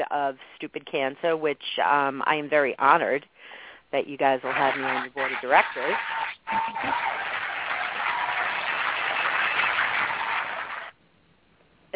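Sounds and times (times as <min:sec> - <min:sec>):
speech: 0:00.0 - 0:07.1
applause: 0:04.5 - 0:11.0.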